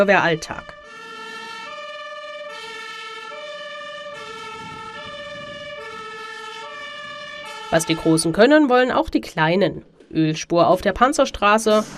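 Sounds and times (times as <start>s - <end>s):
speech: 0.0s - 0.8s, 7.7s - 11.9s
fire engine siren wailing in a two-tone pattern: 0.0s - 8.7s.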